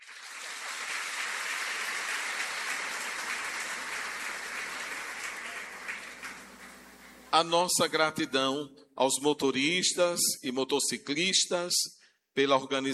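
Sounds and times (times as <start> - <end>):
applause: 0.0 - 7.3
speech: 7.3 - 12.9.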